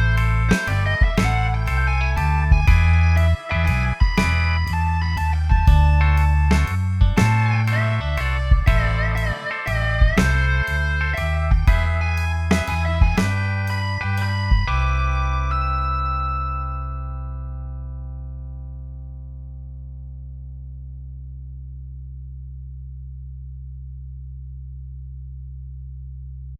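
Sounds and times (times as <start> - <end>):
MIDI blues music: 0.0 - 17.7.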